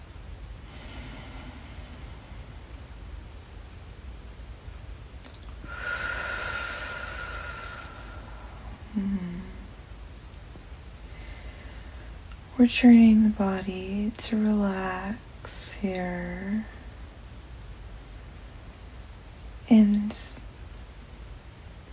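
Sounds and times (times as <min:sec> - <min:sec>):
deep breath during a guided relaxation exercise: 0:00.6 - 0:02.8, 0:05.6 - 0:09.7, 0:11.0 - 0:12.2
speech: 0:12.6 - 0:16.8, 0:19.7 - 0:20.4.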